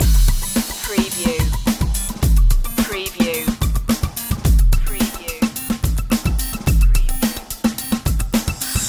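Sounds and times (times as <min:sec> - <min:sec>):
beat loop: 0:00.0 - 0:08.8.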